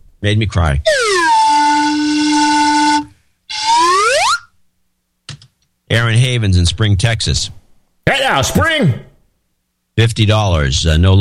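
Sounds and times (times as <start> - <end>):
speech: 0.2 - 1.2, 6.0 - 9.1, 10.0 - 11.1
slide whistle: 0.9 - 4.6.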